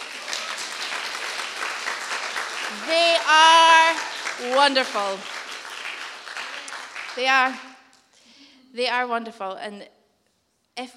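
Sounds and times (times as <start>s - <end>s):
audience clapping: 0.0s - 8.0s
speech: 2.7s - 3.7s, 4.4s - 5.3s, 7.2s - 7.7s, 8.7s - 10.0s, 10.8s - 10.9s.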